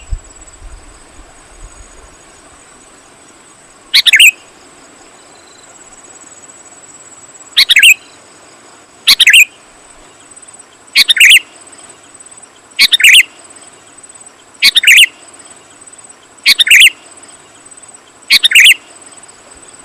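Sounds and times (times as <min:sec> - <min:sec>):
Sooty-headed bulbul repeating chirpy phrases: 0:03.9 - 0:04.4, 0:07.6 - 0:08.0, 0:12.8 - 0:13.3, 0:14.7 - 0:15.1, 0:16.5 - 0:16.9, 0:18.3 - 0:18.8.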